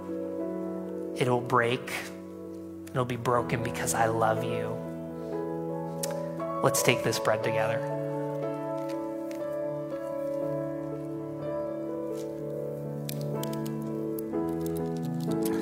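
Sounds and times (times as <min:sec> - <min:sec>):
steady instrumental music: 0:00.0 - 0:15.6
speech: 0:01.2 - 0:02.2, 0:02.9 - 0:04.9, 0:06.6 - 0:08.0
paper crackling: 0:07.8 - 0:15.6.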